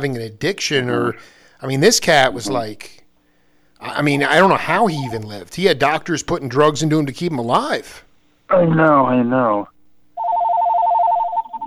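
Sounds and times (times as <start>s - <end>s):
speech: 0.0s - 3.0s, 3.8s - 9.7s
phone ringing with rapid electronic warble: 10.2s - 11.6s.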